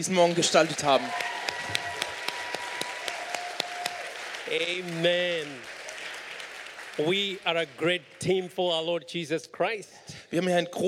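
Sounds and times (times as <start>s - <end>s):
speech: 0.0s - 1.8s, 4.5s - 5.7s, 7.0s - 10.8s
audience applause: 0.0s - 8.6s.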